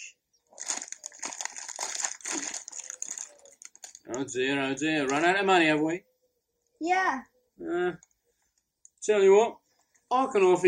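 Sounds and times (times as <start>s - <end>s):
plastic sweet bag crinkling: 0.5s - 4.3s
speech: 4.1s - 6.1s, 6.8s - 8.1s, 9.0s - 10.6s.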